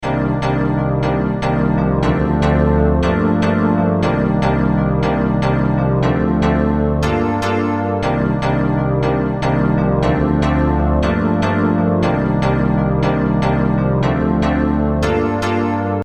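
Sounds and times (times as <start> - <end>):
piano: 0.0 - 16.0.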